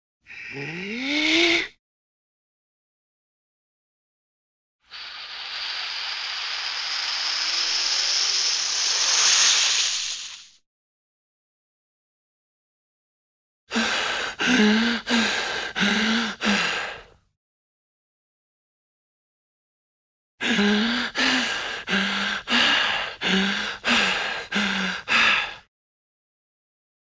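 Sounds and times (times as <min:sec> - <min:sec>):
cartoon breathing: 0:00.3 - 0:01.8, 0:04.9 - 0:10.3, 0:13.7 - 0:17.1, 0:20.4 - 0:25.7.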